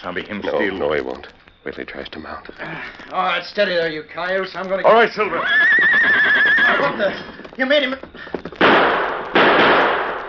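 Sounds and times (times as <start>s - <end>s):
speech: 0.0s - 8.1s
gunshot: 8.6s - 10.2s.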